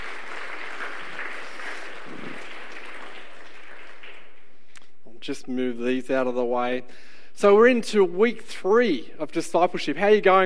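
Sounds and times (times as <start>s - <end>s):
audience clapping: 0.0s - 4.9s
speech: 5.3s - 10.4s.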